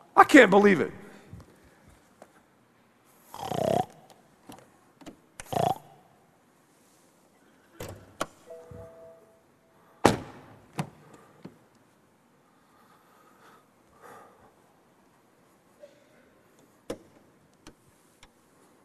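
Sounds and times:
speech: 0.2 - 1.0
pig grunting: 3.4 - 4.0.

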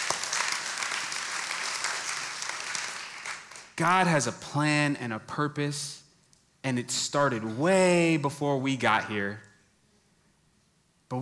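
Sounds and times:
audience clapping: 0.0 - 3.8
speech: 3.8 - 6.0, 6.6 - 9.5, 11.1 - 11.2.

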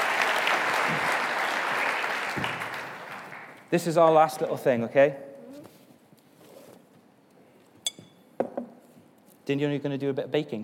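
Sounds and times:
audience applause: 0.0 - 3.6
speech: 3.7 - 5.3, 9.5 - 10.6.

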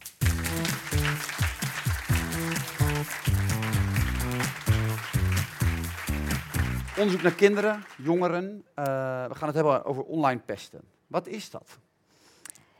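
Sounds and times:
loud rhythmic music with punchy repeated chords: 0.0 - 8.0
audience applause: 0.0 - 8.4
speech: 7.0 - 11.8.

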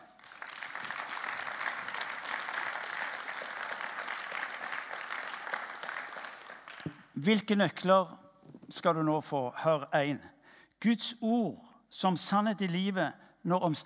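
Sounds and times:
audience applause: 0.0 - 7.1
speech: 7.2 - 13.8.

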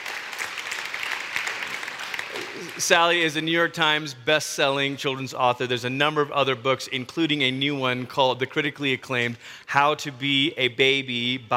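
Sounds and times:
audience applause: 0.0 - 3.3
speech: 2.6 - 11.5.

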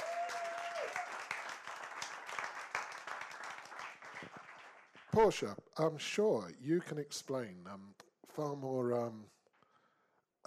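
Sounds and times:
audience applause: 0.0 - 5.3
speech: 5.2 - 9.4.

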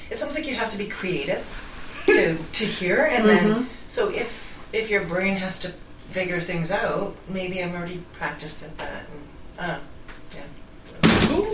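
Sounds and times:
speech: 0.4 - 9.9
plastic water bottle landing with a thud: 11.0 - 11.5.

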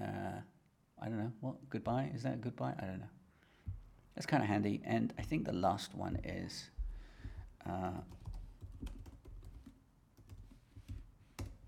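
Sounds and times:
speech: 1.0 - 3.2, 4.2 - 6.8, 7.6 - 8.2
typing on a computer keyboard with plastic key clicks: 8.0 - 11.6.

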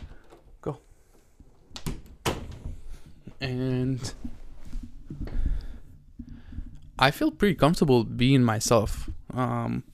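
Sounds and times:
speech: 0.6 - 0.9, 3.4 - 4.4, 7.0 - 9.9
door being opened: 1.7 - 3.0.

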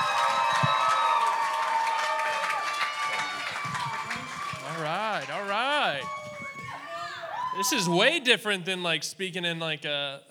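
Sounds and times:
students clapping at a church youth service: 0.0 - 6.8
students whooping and shouting: 0.0 - 7.8
speech: 7.6 - 10.2.

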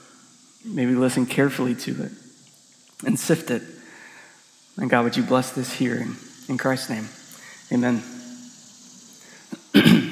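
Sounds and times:
speech: 0.6 - 2.2, 3.0 - 3.8, 4.8 - 8.2
throat clearing: 9.5 - 10.1.

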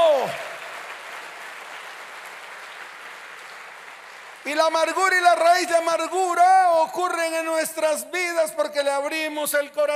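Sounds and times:
audience applause: 0.0 - 5.6
speech: 4.5 - 9.9.

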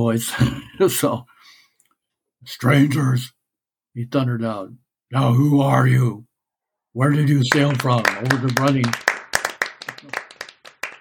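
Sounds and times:
speech: 0.0 - 1.3, 2.4 - 3.4, 4.0 - 6.3, 6.9 - 9.1
applause: 7.4 - 11.0.

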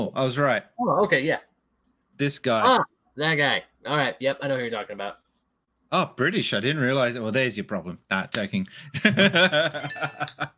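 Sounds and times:
speech: 0.0 - 1.5, 2.2 - 5.2, 5.9 - 10.5
laughter: 8.8 - 10.5
phone notification ding: 9.8 - 10.3.

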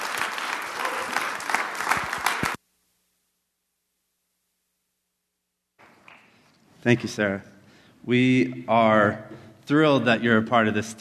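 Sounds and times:
crowd applause: 0.0 - 2.6
speech: 6.8 - 10.9.

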